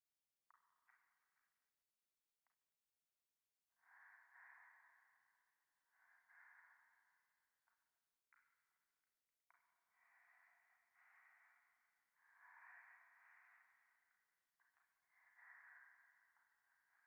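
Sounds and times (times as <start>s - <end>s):
breathing close against the right ear in a ruin: 3.8s - 7.4s, 9.8s - 17.0s.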